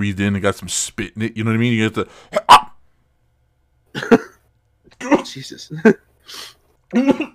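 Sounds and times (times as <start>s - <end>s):
speech: 0.0s - 2.6s, 5.3s - 7.3s
gravelly throat-clearing cough with a low grunt: 3.9s - 4.4s, 6.9s - 7.3s.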